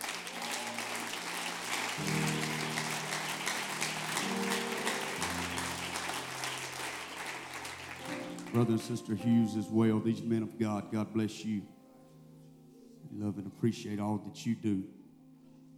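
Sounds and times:
hand clapping: 0:00.0 - 0:09.1
speech: 0:08.6 - 0:11.8, 0:13.2 - 0:15.0.

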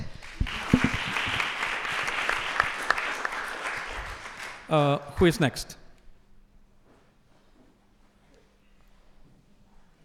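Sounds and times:
audience applause: 0:00.0 - 0:04.9
speech: 0:04.7 - 0:05.8.

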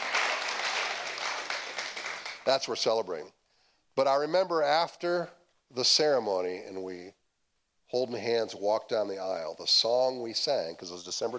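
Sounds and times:
group applause: 0:00.0 - 0:02.6
speech: 0:02.4 - 0:03.4, 0:04.0 - 0:07.2, 0:07.9 - 0:11.3.

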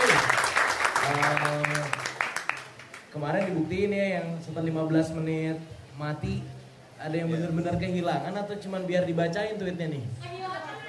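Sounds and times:
audience applause: 0:00.0 - 0:03.0
speech: 0:03.1 - 0:10.7.

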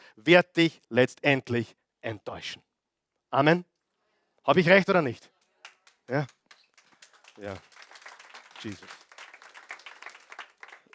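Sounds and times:
speech: 0:00.2 - 0:02.7, 0:03.3 - 0:03.7, 0:04.4 - 0:05.4, 0:06.1 - 0:06.4, 0:07.4 - 0:07.7, 0:08.6 - 0:09.0
audience clapping: 0:05.4 - 0:10.9.

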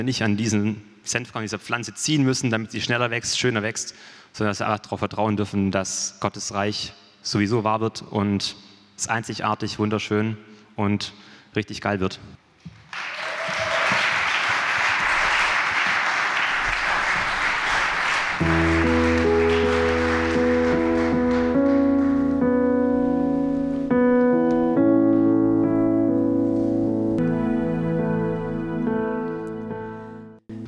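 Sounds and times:
speech: 0:00.0 - 0:12.4
loud audience applause: 0:12.9 - 0:22.4
sustained musical chords: 0:18.4 - 0:30.4.

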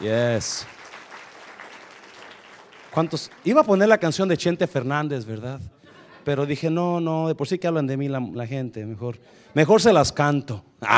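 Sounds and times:
speech: 0:00.0 - 0:00.8, 0:02.9 - 0:10.9
audience applause: 0:00.0 - 0:04.0
laughter: 0:05.6 - 0:06.8.

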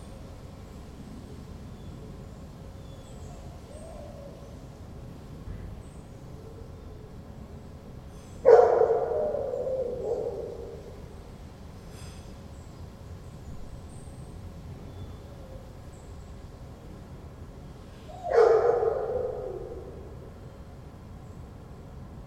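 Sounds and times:
dog howling: 0:08.5 - 0:10.9, 0:18.2 - 0:20.0.

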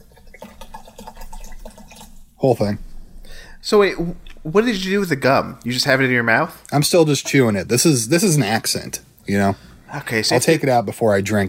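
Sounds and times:
shooter of Fireball poured into a drink: 0:00.0 - 0:02.8
speech: 0:02.4 - 0:02.9, 0:03.6 - 0:11.4.

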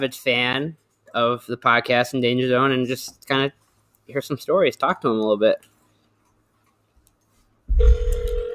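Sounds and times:
speech: 0:00.0 - 0:05.7, 0:07.8 - 0:08.1
telephone call ringing on speakerphone: 0:07.7 - 0:08.5.

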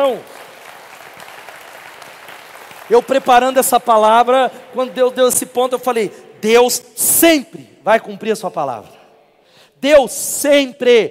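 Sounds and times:
speech: 0:00.0 - 0:00.3, 0:02.9 - 0:09.0, 0:09.8 - 0:11.1
audience applause: 0:00.0 - 0:03.8.

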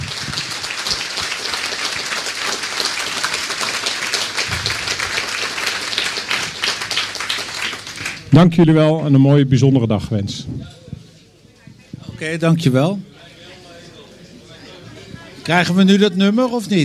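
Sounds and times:
crowd applause: 0:00.0 - 0:08.4
speech: 0:08.3 - 0:10.8, 0:12.2 - 0:13.1, 0:15.5 - 0:16.8.

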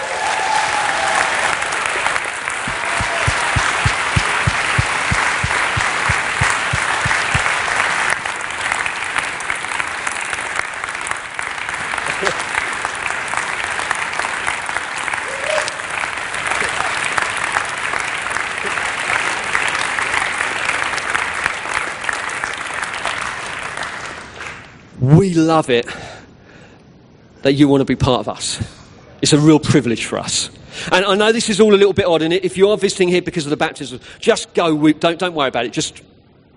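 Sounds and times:
audience applause: 0:00.0 - 0:24.6
speech: 0:25.5 - 0:26.1, 0:27.4 - 0:36.1.

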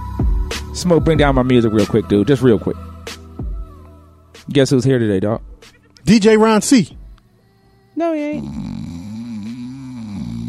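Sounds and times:
speech: 0:00.8 - 0:02.9, 0:04.5 - 0:07.0, 0:08.0 - 0:08.7
person imitating snoring: 0:08.2 - 0:10.4.

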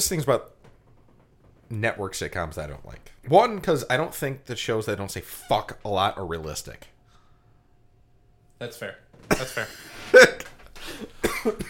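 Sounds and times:
speech: 0:00.0 - 0:00.6, 0:01.7 - 0:06.9, 0:08.6 - 0:11.6
harsh coughing: 0:09.3 - 0:11.6.

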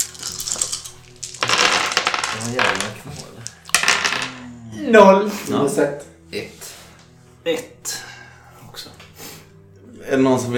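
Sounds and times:
dice clattering across a hard surface: 0:00.0 - 0:04.5
speech: 0:02.4 - 0:03.3, 0:04.9 - 0:06.6, 0:07.4 - 0:08.0, 0:10.1 - 0:10.5.

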